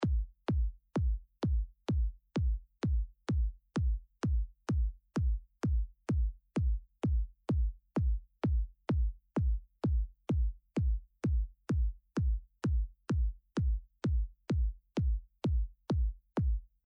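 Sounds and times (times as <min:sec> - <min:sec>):
kick drum: 0:00.0 - 0:16.8.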